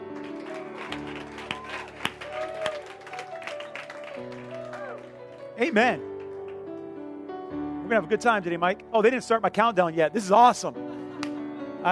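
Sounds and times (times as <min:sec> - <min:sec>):
audience clapping: 0:00.0 - 0:06.8
speech: 0:05.6 - 0:06.1, 0:07.9 - 0:10.8.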